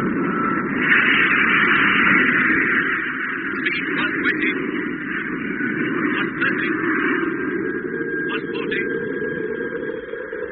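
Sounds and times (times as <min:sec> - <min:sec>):
aircraft engine running at low power: 0:00.0 - 0:10.5.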